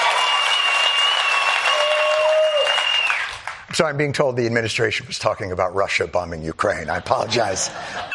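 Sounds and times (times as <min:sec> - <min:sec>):
crowd applauding: 0:00.0 - 0:03.6
thin whistle-like tones: 0:00.2 - 0:03.3
speech: 0:03.8 - 0:08.1.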